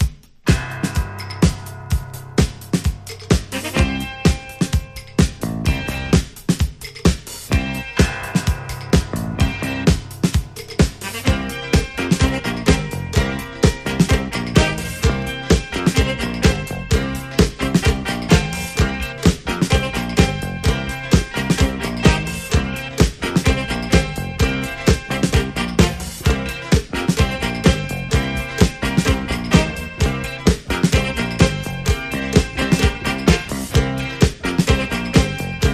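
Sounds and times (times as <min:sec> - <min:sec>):
funky instrumental music: 0:00.0 - 0:35.7.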